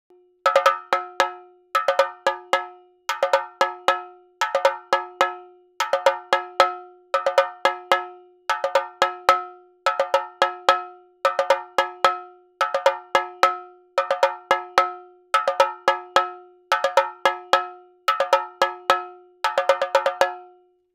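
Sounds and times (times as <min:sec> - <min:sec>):
chenda drum: 0:00.4 - 0:20.6.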